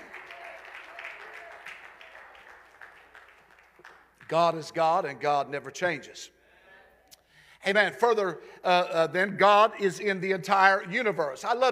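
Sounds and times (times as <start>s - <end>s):
audience clapping hands: 0.0s - 4.6s
speech: 4.3s - 6.4s, 7.6s - 11.7s.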